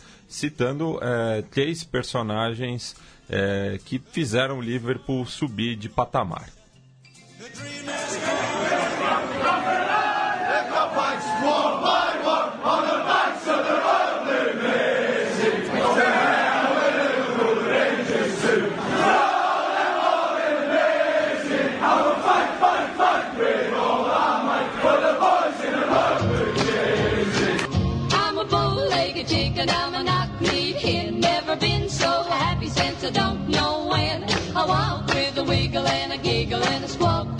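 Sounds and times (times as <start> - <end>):
speech: 0.3 - 6.6
football supporters singing a folk-style chant: 7.7 - 37.2.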